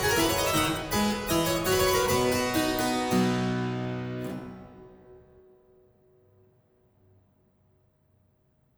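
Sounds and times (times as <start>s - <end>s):
harpsichord: 0.0s - 4.8s.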